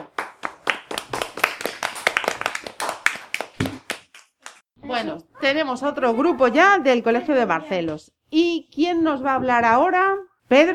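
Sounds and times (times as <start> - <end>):
schoolchildren applauding: 0.0 - 4.6
speech: 5.0 - 10.7.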